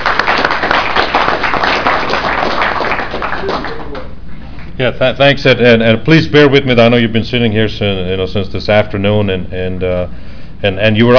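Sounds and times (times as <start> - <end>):
audience applause: 0.0 - 4.1
speech: 4.8 - 11.1.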